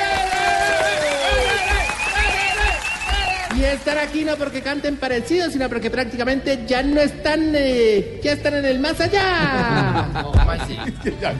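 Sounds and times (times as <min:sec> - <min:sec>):
cheers and whoops: 0:00.0 - 0:03.6
crowd applause: 0:00.0 - 0:04.5
speech: 0:03.6 - 0:11.3
laughter: 0:09.2 - 0:11.3.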